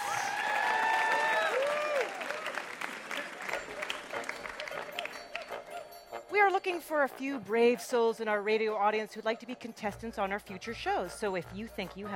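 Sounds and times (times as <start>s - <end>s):
audience applause for radio quiz show contestants: 0.0s - 5.6s
speech: 6.5s - 12.1s.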